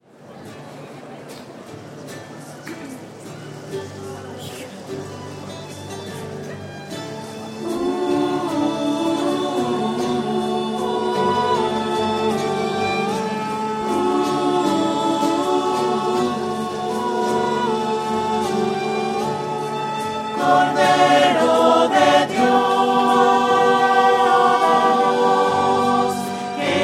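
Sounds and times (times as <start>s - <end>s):
voices: 0.0s - 26.8s.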